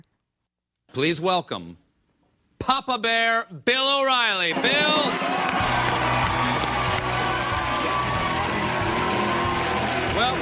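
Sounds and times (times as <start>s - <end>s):
speech: 1.0s - 1.8s, 2.6s - 5.9s
TV talk show studio audience cheering and calling: 4.5s - 10.4s.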